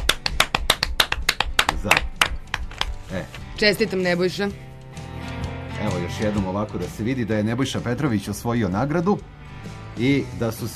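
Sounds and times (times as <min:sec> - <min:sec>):
audience applauding a book prize draw winner: 0:00.0 - 0:02.9
speech: 0:01.8 - 0:02.1, 0:03.1 - 0:04.7, 0:05.8 - 0:09.4, 0:10.0 - 0:10.7.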